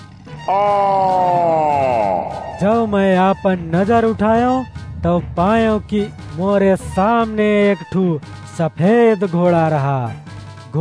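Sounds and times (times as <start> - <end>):
speech: 0.5 - 1.6, 2.6 - 10.7
deep creature roar fading into a groan: 0.5 - 2.9.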